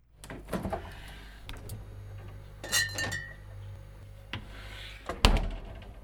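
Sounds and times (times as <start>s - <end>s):
low steady hum: 0.1s - 6.0s
fridge door opening: 0.2s - 3.4s, 4.8s - 6.0s
glass bottles clinking: 2.6s - 3.4s.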